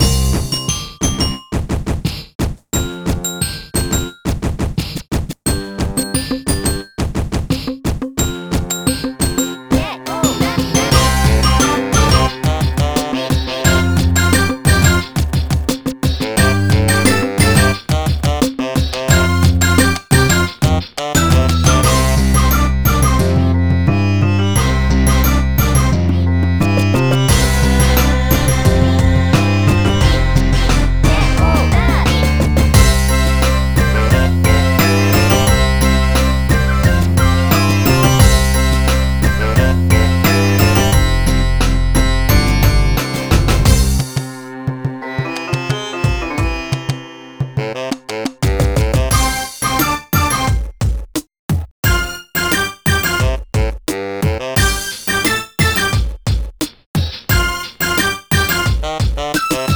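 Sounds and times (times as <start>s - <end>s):
desert music at 88 BPM: 0.0s - 59.7s.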